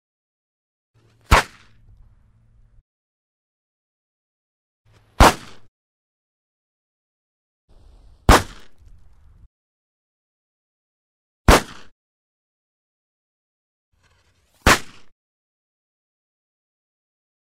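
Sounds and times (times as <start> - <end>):
gunshot: 1.2 - 1.8, 5.2 - 5.7, 8.2 - 9.0, 11.5 - 12.0, 14.6 - 15.1.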